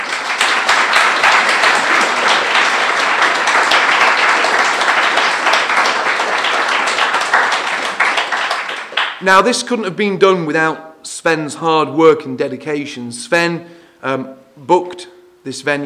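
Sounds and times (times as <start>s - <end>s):
crowd applauding: 0.0s - 9.5s
speech: 9.2s - 15.8s.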